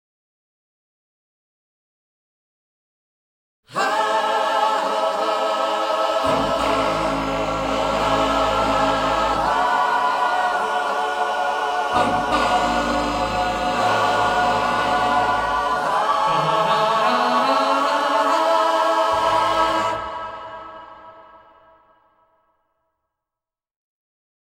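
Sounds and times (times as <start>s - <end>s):
vocal fanfare: 3.7s - 21.9s.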